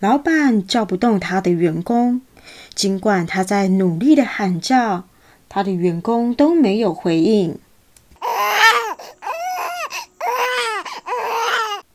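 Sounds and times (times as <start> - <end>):
speech: 0.0 - 7.6
baby crying and wailing loudly: 8.2 - 11.9.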